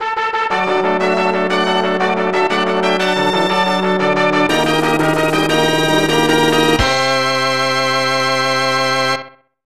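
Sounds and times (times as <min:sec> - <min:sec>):
race start fanfare: 0:00.0 - 0:09.4.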